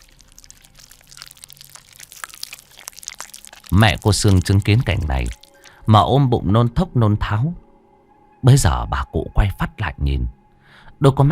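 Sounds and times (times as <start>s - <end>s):
crunchy chewing of raw frogs: 0.0s - 5.9s
speech: 3.7s - 7.6s, 8.4s - 10.4s, 11.0s - 11.3s.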